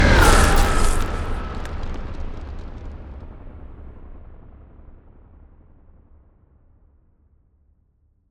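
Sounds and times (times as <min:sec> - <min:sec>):
ice spell cold whooshes: 0:00.2 - 0:02.9.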